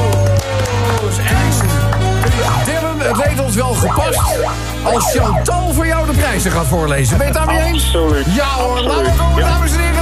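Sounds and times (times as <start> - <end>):
applause: 0.0 - 2.5
speech: 3.6 - 10.0.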